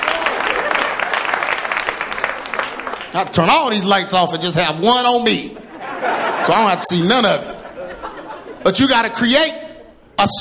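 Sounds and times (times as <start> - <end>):
crowd clapping: 0.0 - 3.5
laughter: 0.2 - 1.3, 5.5 - 8.9
speech: 3.1 - 7.6, 8.6 - 9.6, 10.2 - 10.3.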